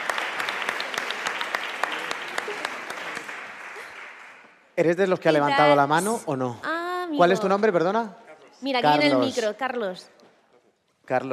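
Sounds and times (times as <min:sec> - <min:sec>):
audience applause: 0:00.0 - 0:04.6
speech: 0:04.8 - 0:10.2, 0:11.1 - 0:11.3.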